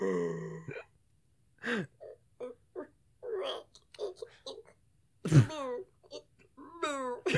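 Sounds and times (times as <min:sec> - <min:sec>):
person vocally imitating a cow giving birth: 0:02.0 - 0:07.3.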